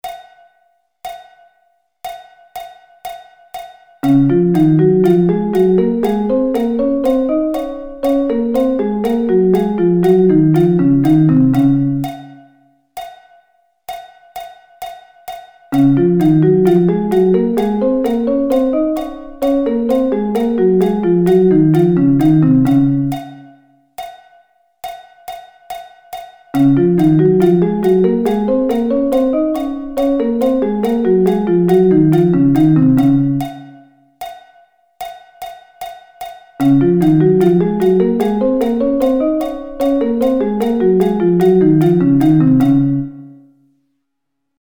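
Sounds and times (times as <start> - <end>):
D-flat thirds: 4.0 - 12.2, 15.8 - 23.3, 26.6 - 33.7, 36.6 - 43.3.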